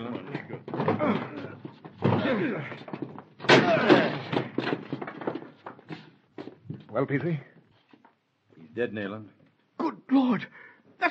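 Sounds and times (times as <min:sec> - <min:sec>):
door being broken down: 0:00.3 - 0:06.0
speech: 0:02.4 - 0:03.0, 0:07.0 - 0:07.5, 0:08.8 - 0:09.4, 0:10.1 - 0:11.0.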